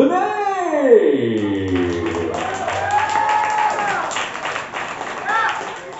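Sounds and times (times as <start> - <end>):
person calling out: 0.0 - 2.6
sliding whoops: 1.4 - 4.2
audience clapping: 1.4 - 5.9.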